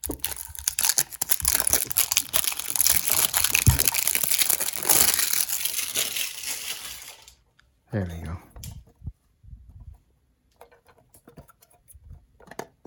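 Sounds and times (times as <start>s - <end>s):
plastic shrink wrap crinkling and tearing off a package: 0.0s - 7.4s
speech: 8.0s - 8.5s.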